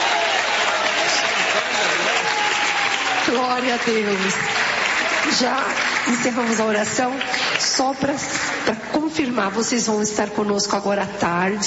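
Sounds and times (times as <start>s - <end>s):
audience applauding: 0.0s - 9.1s
speech: 3.4s - 11.6s.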